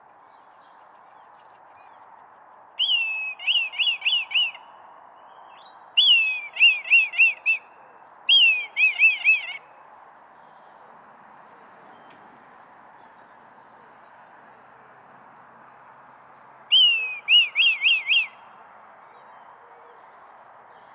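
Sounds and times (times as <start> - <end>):
red kite calling: 2.8 - 4.7, 6.0 - 9.7, 16.7 - 18.4.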